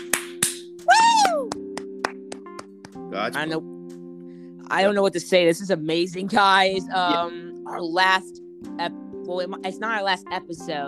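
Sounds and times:
scattered handclaps: 0.0s - 3.0s
person whooping: 0.9s - 1.6s
speech: 3.1s - 3.7s, 4.7s - 10.8s.

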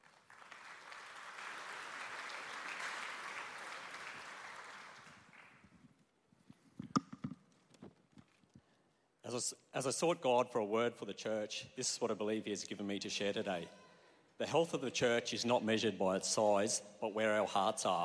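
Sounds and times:
church congregation clapping: 0.0s - 5.7s
speech: 9.3s - 13.8s, 14.4s - 18.0s.

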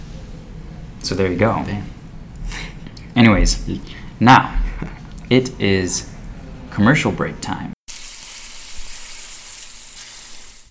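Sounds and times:
speech: 1.0s - 2.0s, 3.2s - 6.1s, 6.8s - 7.8s
bacon frying and sizzling in a pan: 7.9s - 10.6s.

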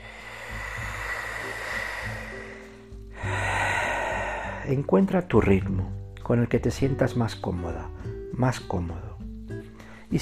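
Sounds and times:
low humming drone: 0.0s - 4.6s
slow long breath: 0.0s - 4.7s
speech: 4.7s - 9.1s.

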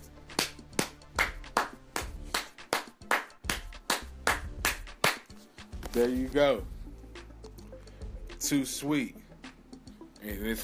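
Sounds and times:
hand claps: 0.3s - 6.0s
speech: 6.0s - 6.8s, 8.4s - 9.2s, 10.2s - 10.6s.

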